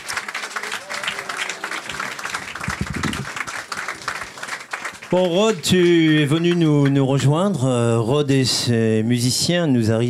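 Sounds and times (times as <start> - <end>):
audience applause in a crowded venue: 0.0 - 7.2
speech: 5.1 - 10.0.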